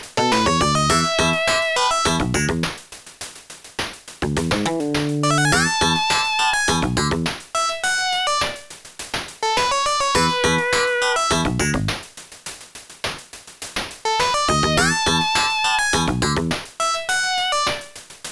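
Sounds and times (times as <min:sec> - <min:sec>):
8-bit PC-8081mk2MH music: 0:00.2 - 0:02.7, 0:04.2 - 0:08.6, 0:09.4 - 0:12.0, 0:14.1 - 0:18.0.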